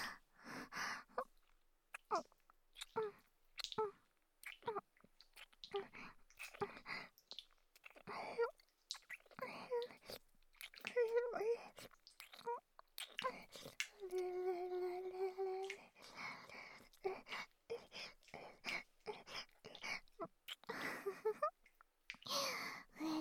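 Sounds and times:
breathing: 0.0s - 1.2s, 15.8s - 20.0s, 20.7s - 21.2s, 22.2s - 23.0s
kissing and lip-smacking: 1.4s - 16.2s, 18.2s - 20.7s, 21.6s - 22.3s.

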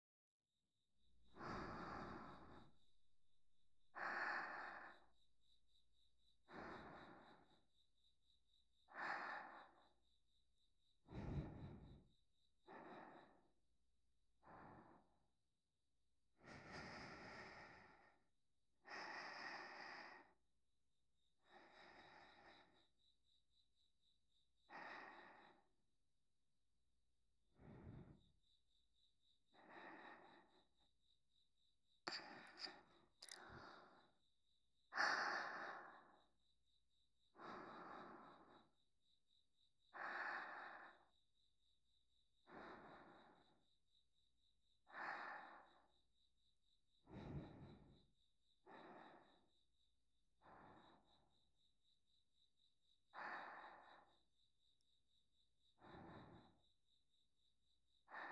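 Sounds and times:
sleep breathing on the right: 1.3s - 2.9s, 3.9s - 5.6s, 6.4s - 7.7s, 8.9s - 10.1s, 11.0s - 13.6s, 14.4s - 15.2s, 16.4s - 20.4s, 21.4s - 23.1s, 24.6s - 25.7s, 27.6s - 28.4s, 29.5s - 30.9s, 32.1s - 34.2s, 34.9s - 36.4s, 37.2s - 38.8s, 39.9s - 41.2s, 42.4s - 43.6s, 44.8s - 46.0s, 46.9s - 49.6s, 50.4s - 51.3s, 53.1s - 54.9s, 55.6s - 56.7s.

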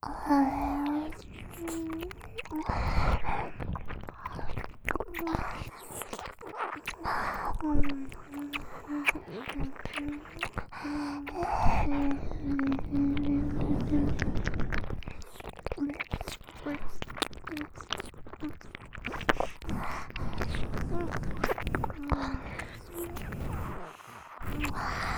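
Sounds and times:
intense ear licking ASMR: 0.0s - 25.1s.

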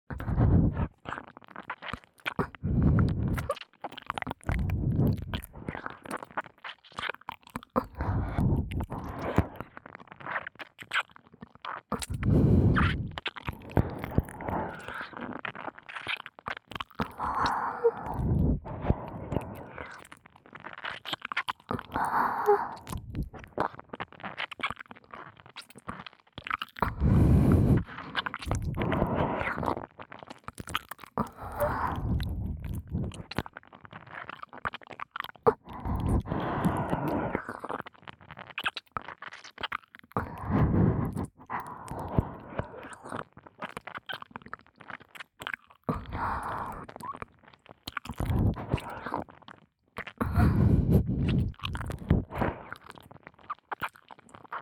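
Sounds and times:
wet ear licking recorded with KU100: 0.1s - 54.6s.

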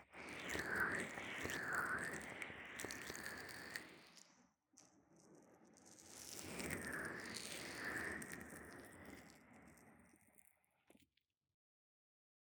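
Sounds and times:
ear massage with oil: 0.0s - 4.3s, 5.8s - 10.5s.

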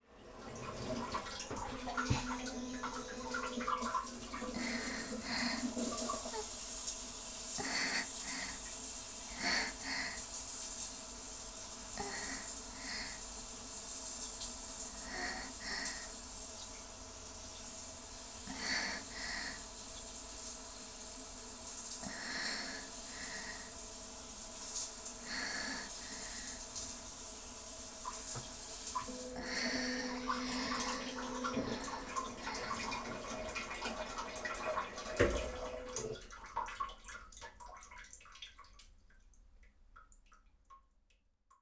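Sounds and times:
Washlet bidet toilet: 0.0s - 38.9s.

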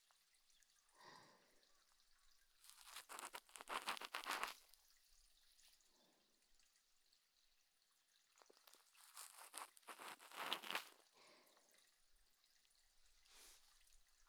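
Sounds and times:
ear cleaning on the right ear: 2.7s - 4.6s, 9.0s - 10.9s.

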